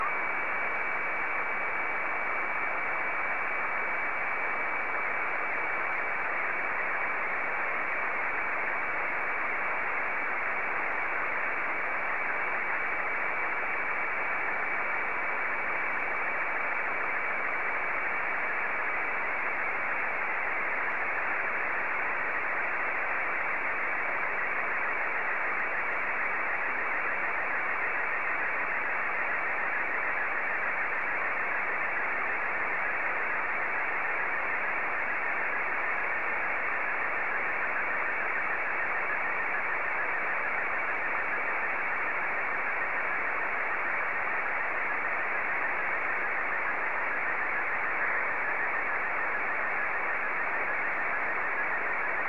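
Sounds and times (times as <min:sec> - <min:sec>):
SSTV Martin 1 signal: 0:00.0 - 0:52.2.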